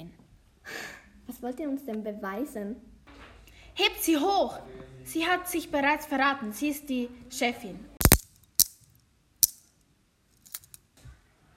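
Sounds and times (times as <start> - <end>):
speech: 1.4 - 2.9, 4.0 - 7.9
handcuffs clicking shut: 8.0 - 9.7, 10.4 - 10.8.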